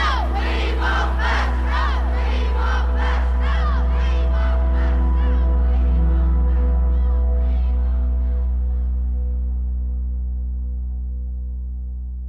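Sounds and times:
protest crowd shouting against busing: 0:00.0 - 0:08.5
steady low hum: 0:00.0 - 0:12.2.

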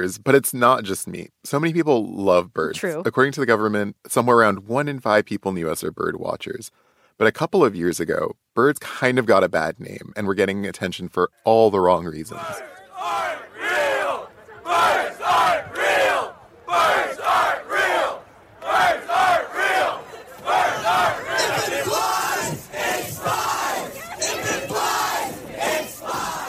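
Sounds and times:
speech: 0:00.0 - 0:13.4
crowd chanting at a bird truther protest: 0:12.3 - 0:26.4.

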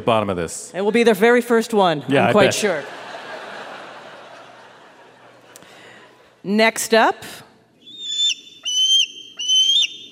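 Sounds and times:
speech: 0:00.0 - 0:03.1, 0:06.4 - 0:07.4
laughter: 0:02.4 - 0:06.3
bald eagle whistled calls: 0:07.8 - 0:10.0.

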